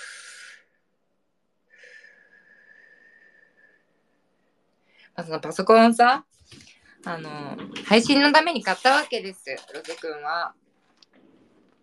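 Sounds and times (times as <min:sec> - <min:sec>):
deep breath: 0:00.0 - 0:01.0, 0:01.7 - 0:05.2
faint thin whistling tone: 0:01.7 - 0:04.3
speech: 0:05.2 - 0:06.3, 0:07.0 - 0:10.6.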